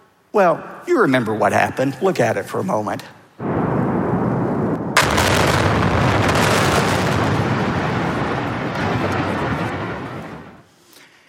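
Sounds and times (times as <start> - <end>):
speech: 0.4 - 3.2
building implosion, series of demolition explosions: 3.4 - 10.7.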